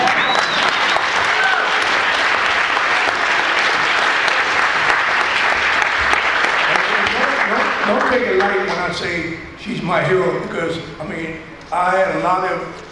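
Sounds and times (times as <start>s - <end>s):
faint whoops and cheers: 0.0s - 1.8s
audience applause: 0.0s - 8.9s
speech: 9.0s - 12.8s.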